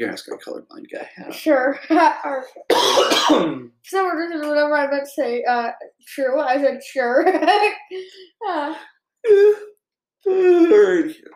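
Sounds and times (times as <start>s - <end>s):
speech: 0.0s - 11.3s
person yawning: 10.3s - 11.1s.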